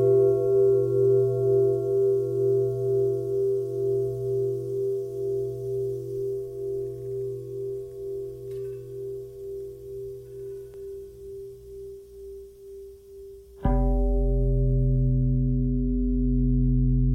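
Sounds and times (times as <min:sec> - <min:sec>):
long simple bell tones: 0:00.0 - 0:11.7, 0:13.6 - 0:17.0.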